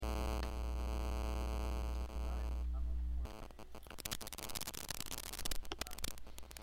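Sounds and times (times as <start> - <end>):
interference: 0.0 - 6.6.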